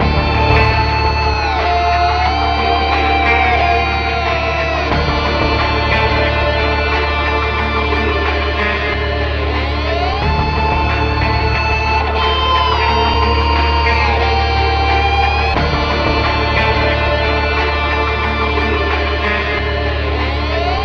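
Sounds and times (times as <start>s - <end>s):
sad guitar loop: 0.0s - 20.8s.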